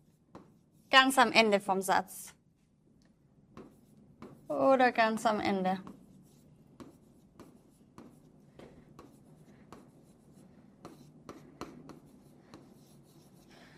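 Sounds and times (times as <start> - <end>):
speech: 0.9 - 2.4, 4.5 - 5.9
pen scratching on paper writing by hand: 3.6 - 4.6, 5.8 - 13.7.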